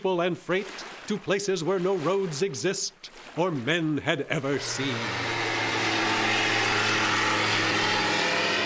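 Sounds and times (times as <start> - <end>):
speech: 0.0 - 5.6
bush plane engine: 4.4 - 8.6.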